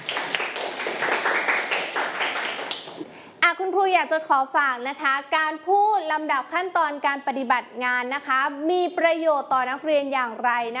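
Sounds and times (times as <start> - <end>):
children clapping for a classmate: 0.0 - 3.1
speech: 3.8 - 10.7.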